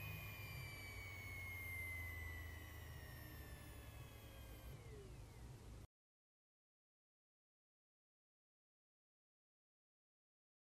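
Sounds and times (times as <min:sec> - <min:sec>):
hard disk drive spinning up: 0:00.0 - 0:05.9.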